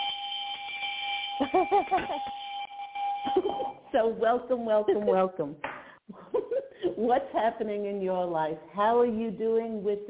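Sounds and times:
bell sound effect for callers: 0.0s - 4.8s
speech: 1.4s - 2.5s, 3.5s - 6.3s, 6.9s - 10.0s.

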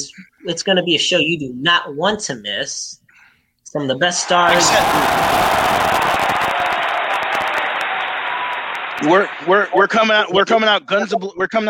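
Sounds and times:
speech: 0.0s - 3.0s, 3.7s - 6.0s, 9.0s - 11.6s
crowd cheering: 4.1s - 10.4s.

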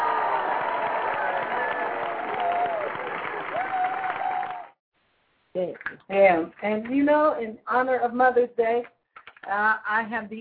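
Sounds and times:
large crowd cheering: 0.0s - 4.8s
scattered shouts and whoops: 0.0s - 4.8s
speech: 5.7s - 10.3s.

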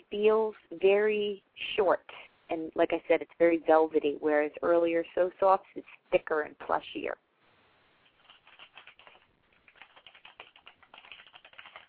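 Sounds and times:
speech: 0.1s - 7.2s
typing on a keyboard: 8.0s - 11.8s.

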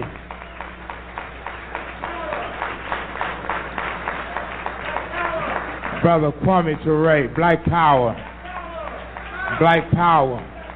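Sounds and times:
audience applause: 0.0s - 6.5s, 8.2s - 10.7s
speech: 6.0s - 8.3s, 9.6s - 10.5s.

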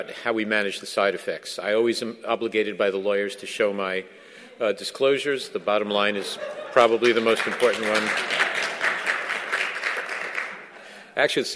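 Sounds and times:
speech: 0.0s - 8.6s, 11.2s - 11.5s
laughter: 5.8s - 9.6s
audience round of applause: 6.6s - 10.9s.

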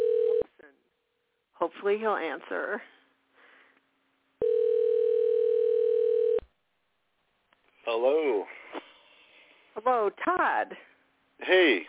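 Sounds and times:
steady mid-pitched telephone dial tone: 0.0s - 0.4s, 4.4s - 6.4s
speech: 1.6s - 3.0s, 7.9s - 8.6s, 9.8s - 11.8s.

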